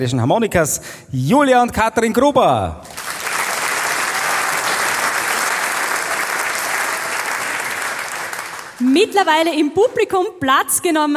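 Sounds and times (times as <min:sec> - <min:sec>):
speech: 0:00.0 - 0:03.3, 0:09.0 - 0:11.1
audience applause: 0:02.9 - 0:08.8.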